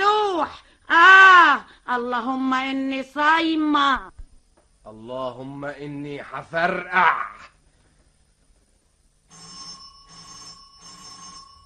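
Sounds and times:
speech: 0.4 - 4.1, 4.9 - 7.5
doorbell ringing: 9.3 - 11.6.

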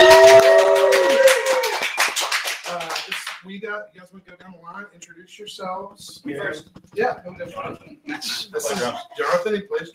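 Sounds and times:
crowd applauding with dense clapping: 0.0 - 3.4
speech: 3.6 - 9.9.

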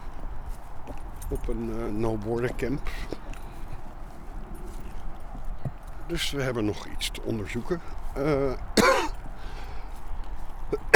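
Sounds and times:
speech: 1.3 - 3.2, 6.1 - 8.9
person coughing: 8.8 - 9.2, 10.8 - 10.9.

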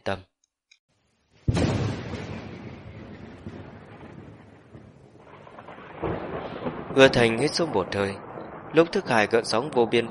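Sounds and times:
speech: 0.0 - 0.3, 7.0 - 10.0
rumbling thunder: 1.5 - 10.0.

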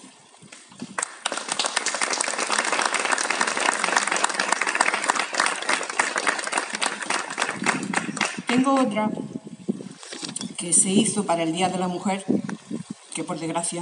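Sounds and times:
audience applause: 1.0 - 8.8
speech: 8.5 - 9.3, 10.6 - 12.5, 13.2 - 13.8.

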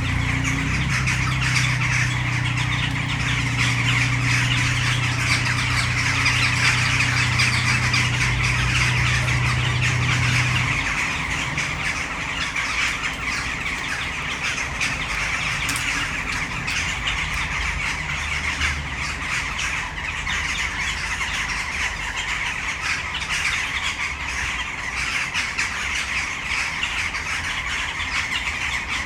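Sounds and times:
steady low engine hum: 0.0 - 22.8
Western jackdaw flock chattering: 0.0 - 29.0.

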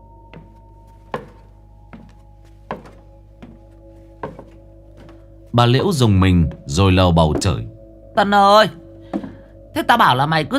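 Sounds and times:
footsteps walking: 0.3 - 7.8
speech: 5.6 - 8.8, 9.8 - 10.5.

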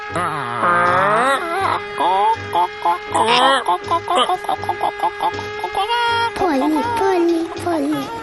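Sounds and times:
laughter: 0.2 - 6.9
chickens clucking: 2.5 - 8.2.

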